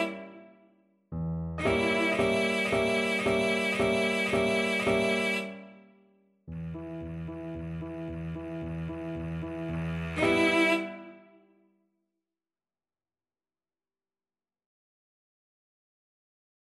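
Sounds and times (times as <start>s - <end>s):
violoncello: 0.0s - 0.6s, 1.6s - 5.9s, 6.5s - 11.4s.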